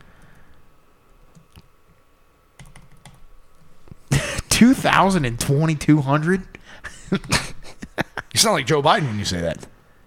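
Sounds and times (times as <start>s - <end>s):
computer keyboard typing during a Google search: 2.6s - 3.2s
speech: 4.6s - 7.5s, 8.4s - 9.7s.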